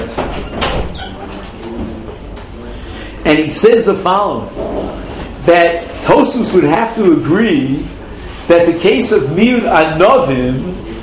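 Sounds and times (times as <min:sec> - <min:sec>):
door being opened during a lesson: 0:00.0 - 0:02.4
steady noisy rumble: 0:00.0 - 0:11.0
speech: 0:03.3 - 0:10.9.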